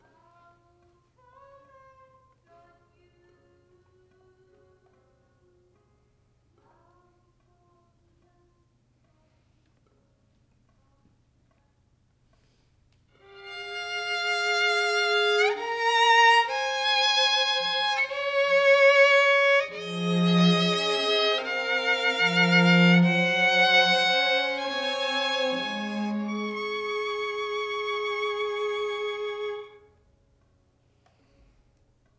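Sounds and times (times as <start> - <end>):
violin: 13.2 - 30.0.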